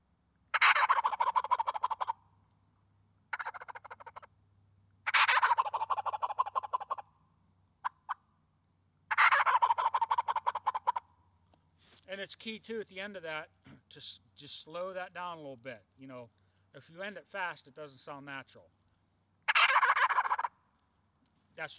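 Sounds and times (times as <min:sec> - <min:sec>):
loud turkey gobbles from a gobble call blown full bore: 0:00.5 - 0:02.3, 0:03.3 - 0:04.3, 0:05.0 - 0:07.1, 0:07.8 - 0:08.2, 0:09.1 - 0:11.1, 0:19.4 - 0:20.6
speech: 0:12.2 - 0:18.7, 0:21.6 - 0:21.7.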